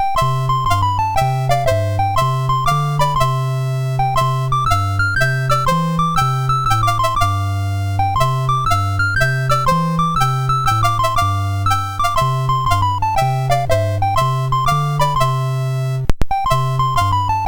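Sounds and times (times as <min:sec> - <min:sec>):
MOS 6581R2 SID chip music: 0:00.0 - 0:17.4.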